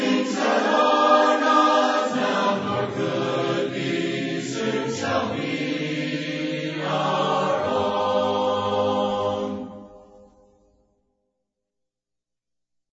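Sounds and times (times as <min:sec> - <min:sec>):
a cappella hymn: 0:00.0 - 0:10.3.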